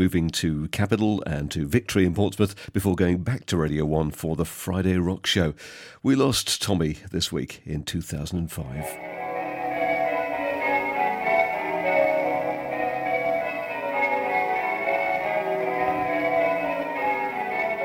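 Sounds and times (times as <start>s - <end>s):
speech: 0.0s - 9.1s
Bow Bells chiming in London: 8.8s - 17.8s.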